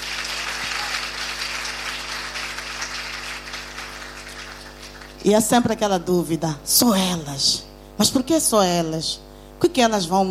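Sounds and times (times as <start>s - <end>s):
audience applause: 0.0s - 5.2s
speech: 5.2s - 10.2s.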